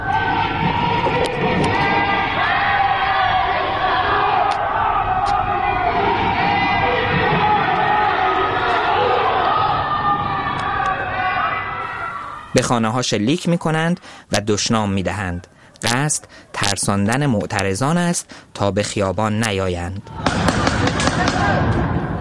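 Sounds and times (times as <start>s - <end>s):
protest slogans chanted from windows: 0.0s - 12.6s
speech: 12.6s - 22.1s.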